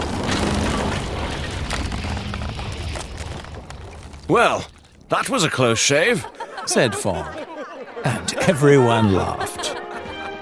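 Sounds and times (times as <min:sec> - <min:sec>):
bridge collapsing into a river: 0:00.0 - 0:05.8
speech: 0:04.3 - 0:07.4, 0:08.0 - 0:09.6
laughter: 0:05.8 - 0:10.4.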